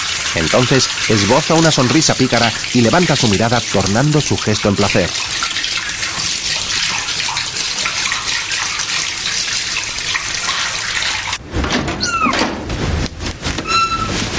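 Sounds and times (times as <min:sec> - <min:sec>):
shower water running: 0:00.0 - 0:11.4
speech: 0:00.4 - 0:05.7
faint high squeaks: 0:12.0 - 0:12.4, 0:13.6 - 0:14.2.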